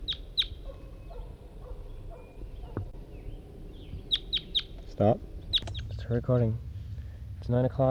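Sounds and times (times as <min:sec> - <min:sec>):
red crossbill calling: 0:00.0 - 0:06.5
speech: 0:05.0 - 0:05.3, 0:06.1 - 0:06.7, 0:07.5 - 0:07.9.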